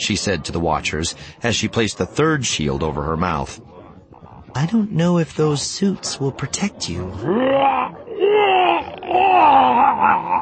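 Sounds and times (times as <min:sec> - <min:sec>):
speech: 0:00.0 - 0:03.8, 0:04.6 - 0:07.9
miserable howl from behind a door: 0:07.1 - 0:10.4.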